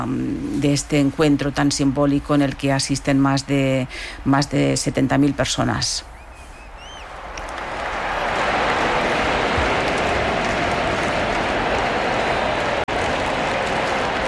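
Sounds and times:
speech: 0:00.0 - 0:06.1
stadium crowd applauding: 0:06.8 - 0:14.2.

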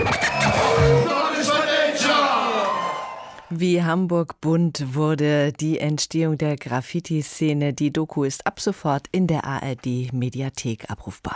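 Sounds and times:
crowd applause: 0:00.0 - 0:03.6
speech: 0:03.6 - 0:11.3.

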